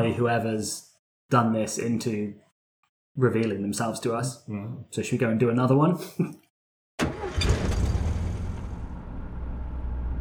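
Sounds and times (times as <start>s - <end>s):
speech: 0.0s - 2.4s, 3.2s - 6.4s
Mick's van driving along: 7.0s - 10.1s.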